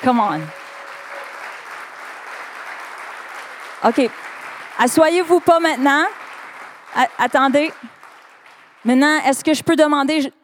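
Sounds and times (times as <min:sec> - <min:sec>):
speech: 0:00.0 - 0:00.6, 0:03.8 - 0:06.2, 0:06.9 - 0:08.0, 0:08.8 - 0:10.4
crowd applause: 0:00.0 - 0:09.2.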